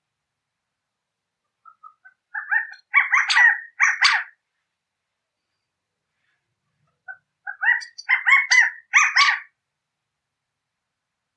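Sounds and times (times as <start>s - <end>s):
California quail calling: 1.6s - 4.4s, 7.0s - 9.6s.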